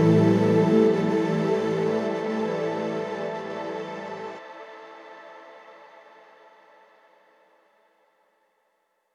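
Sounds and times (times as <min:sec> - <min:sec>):
downtempo chill music with ethereal textures: 0:00.0 - 0:07.1.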